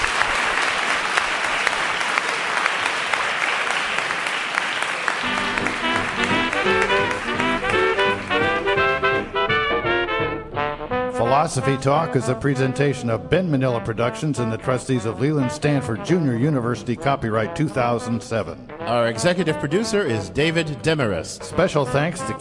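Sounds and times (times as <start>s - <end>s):
live audience clapping: 0.0s - 10.1s
tuneful music: 5.2s - 22.3s
speech: 11.5s - 22.3s.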